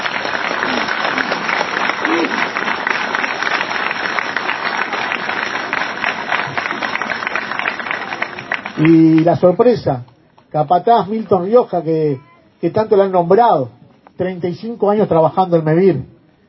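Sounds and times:
audience applause: 0.0 - 9.7
speech: 8.8 - 16.1.

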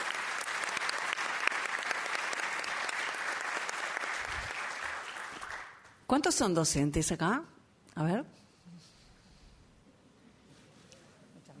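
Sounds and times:
crowd clapping steadily: 0.0 - 6.0
speech: 6.1 - 8.4.

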